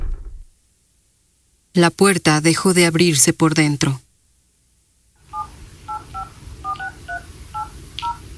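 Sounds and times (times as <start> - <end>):
speech: 1.8 - 4.1
two-pitched touch-tone dialing beeps: 5.3 - 8.2.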